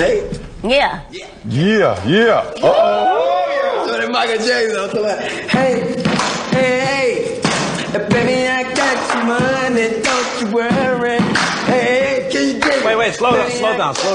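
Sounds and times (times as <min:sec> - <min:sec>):
speech: 0:00.0 - 0:03.3, 0:04.1 - 0:06.0, 0:12.8 - 0:14.1
voices singing a loud steady melody: 0:02.1 - 0:14.1
heavy stomping: 0:04.9 - 0:14.1
sharp clapping: 0:06.1 - 0:06.6, 0:13.9 - 0:14.1.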